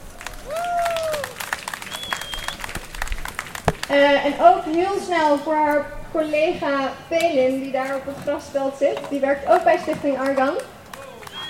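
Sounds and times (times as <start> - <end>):
outdoor audience applause: 0.0 - 3.9, 10.9 - 11.4
bright whistles: 1.9 - 2.6, 11.3 - 11.4
speech: 3.9 - 10.7.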